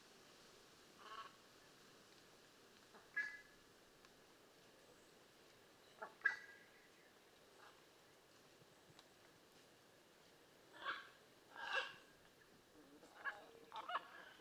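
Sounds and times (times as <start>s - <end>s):
blue-and-yellow macaw squawking: 3.0s - 3.5s, 6.0s - 6.7s, 10.8s - 12.0s, 13.2s - 14.3s.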